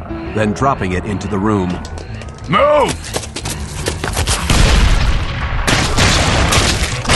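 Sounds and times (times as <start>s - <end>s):
speech: 0.4s - 3.2s
grenade explosion with deep boom and roaring crackling noise: 4.4s - 7.1s.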